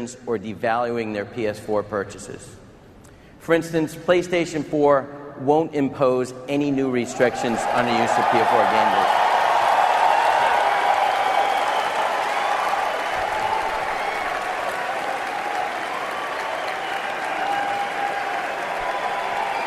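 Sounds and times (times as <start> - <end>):
speech: 0.0 - 2.6, 3.4 - 9.0
long audience applause: 7.1 - 19.6.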